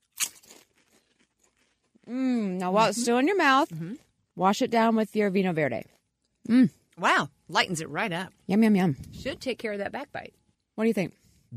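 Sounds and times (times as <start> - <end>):
biting crunchy Lay's potato chips: 0.0 - 2.6
speech: 2.1 - 11.5.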